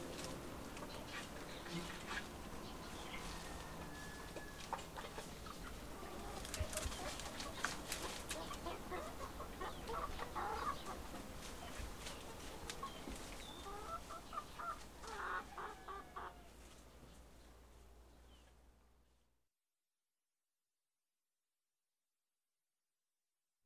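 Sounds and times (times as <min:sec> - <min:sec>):
afternoon farm nature sounds: 0:00.0 - 0:19.3.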